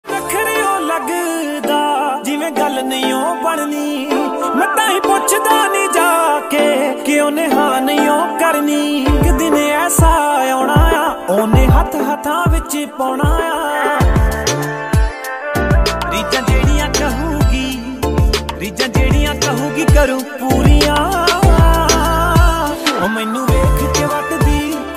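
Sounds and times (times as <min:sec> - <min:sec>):
trending Punjabi ringtone: 0:00.1 - 0:12.6, 0:13.2 - 0:24.9.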